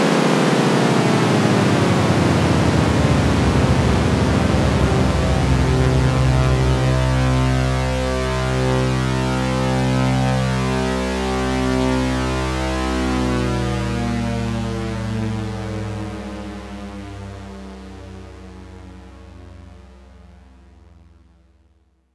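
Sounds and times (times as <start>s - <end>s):
Oberheim OB-8 unison portamento synthesizer patch: 0.0s - 15.6s.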